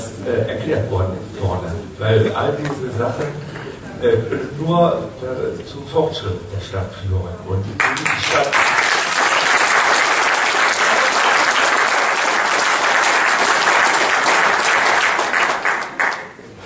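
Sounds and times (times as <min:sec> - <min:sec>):
speech: 0:00.2 - 0:08.8
audience applause: 0:07.8 - 0:16.6.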